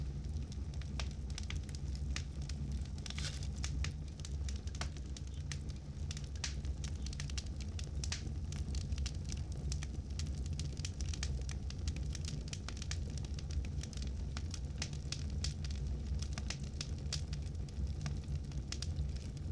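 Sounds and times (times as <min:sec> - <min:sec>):
campfire: 0:00.0 - 0:19.4.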